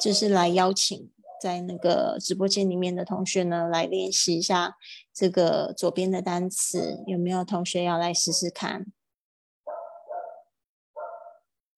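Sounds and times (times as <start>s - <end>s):
speech: 0.0s - 9.0s
dog barking outside: 1.2s - 2.0s, 8.2s - 8.6s, 9.7s - 11.5s.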